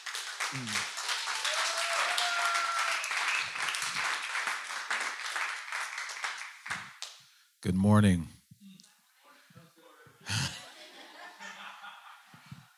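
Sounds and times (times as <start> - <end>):
crowd applause: 0.0 - 7.0
speech: 0.5 - 0.9, 7.6 - 8.4
whistles and cheers: 1.3 - 4.0
laughter: 10.2 - 12.7.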